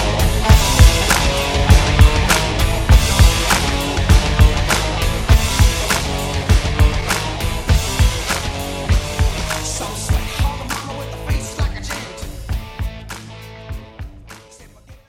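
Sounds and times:
1970s rock music: 0:00.0 - 0:15.0.

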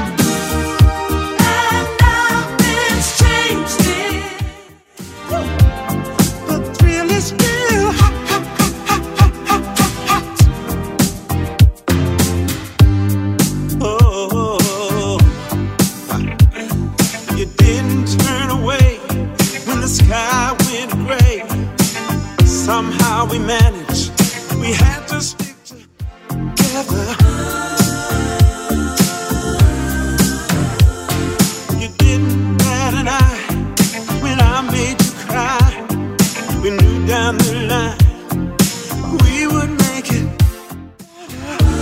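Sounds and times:
80s Redrum drum machine beat: 0:00.0 - 0:41.8.

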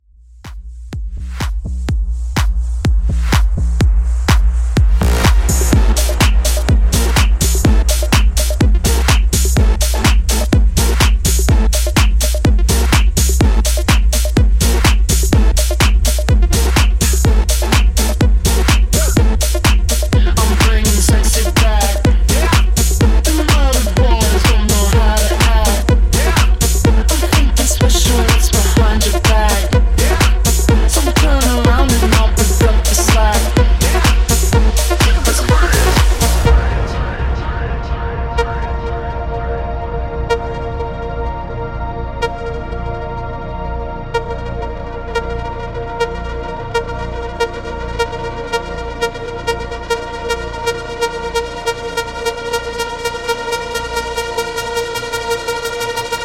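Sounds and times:
epic music mashup: 0:00.2 - 0:56.2.

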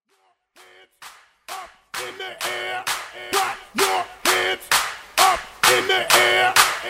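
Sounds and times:
a cappella clapping intro: 0:01.0 - 0:03.1, 0:04.3 - 0:06.8.

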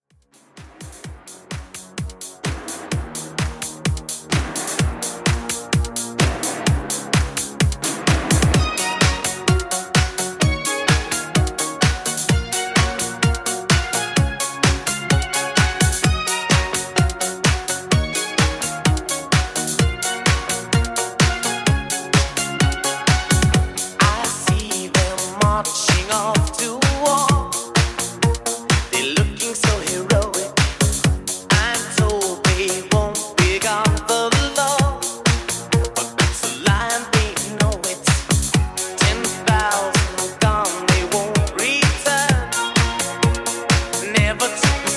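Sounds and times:
80s classic Redrum beat: 0:00.2 - 0:44.9.

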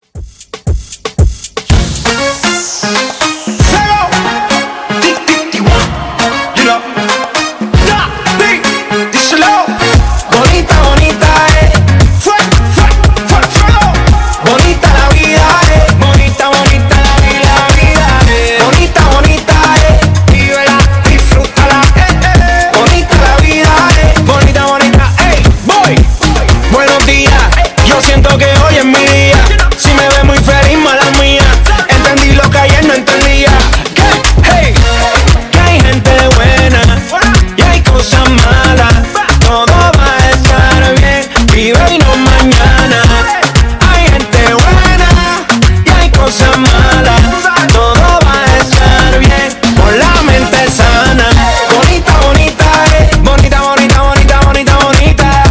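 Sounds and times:
funky reggaeton music: 0:00.0 - 0:55.4.

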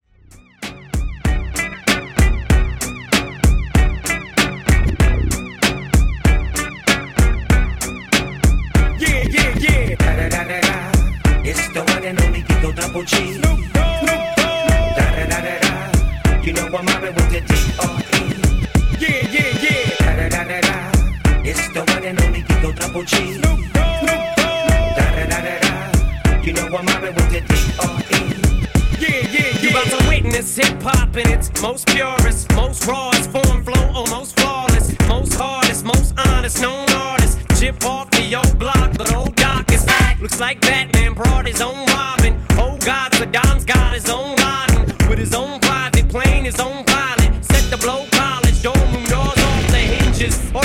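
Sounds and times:
dirty outro music at 96 BPM: 0:00.2 - 0:50.6.

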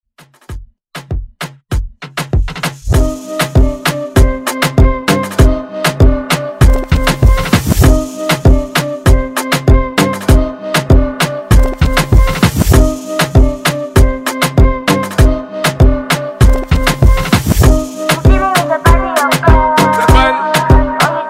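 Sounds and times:
Moombahton beat on Redrum drum machine: 0:00.2 - 0:21.2.

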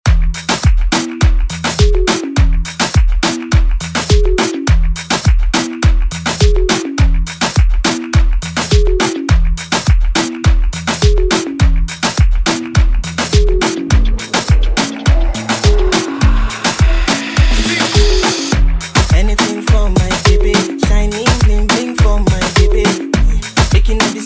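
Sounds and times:
Afro reggaeton music: 0:00.1 - 0:24.2.

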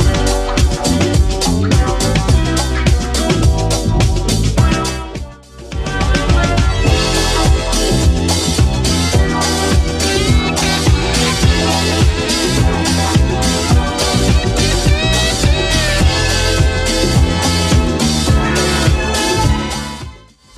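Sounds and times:
seventies-style drum loop: 0:00.0 - 0:20.5.

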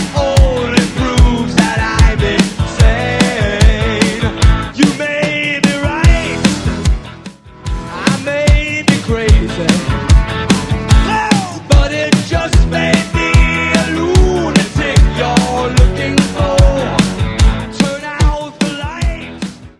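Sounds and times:
80s real drums: 0:00.0 - 0:19.7.

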